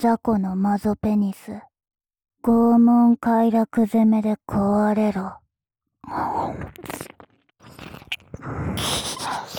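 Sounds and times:
speech: 0.0 - 1.7, 2.4 - 5.4, 6.0 - 9.5
wet ear licking sounds: 6.8 - 9.5.

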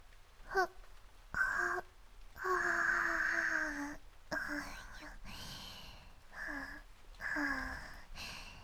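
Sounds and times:
yawn: 1.4 - 8.6.

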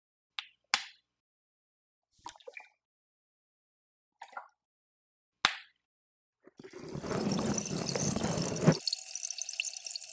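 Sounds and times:
special bubble water fizzing in ear canal: 6.6 - 10.1.

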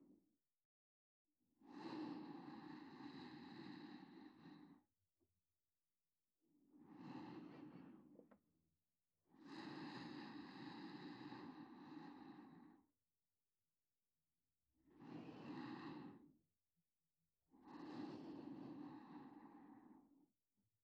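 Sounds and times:
reversed breathing of a sleeping person: 1.9 - 4.8, 6.8 - 8.1, 9.6 - 12.8, 15.0 - 16.3, 17.7 - 20.1.

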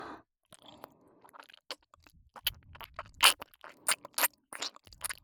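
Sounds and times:
ear licking on the right ear: 1.7 - 5.2.

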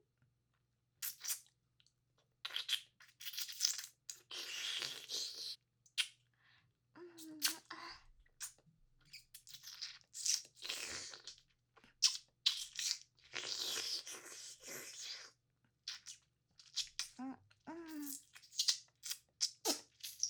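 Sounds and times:
asmr mouth sounds: 1.0 - 1.5, 2.4 - 6.2, 7.0 - 7.7, 12.0 - 20.2.

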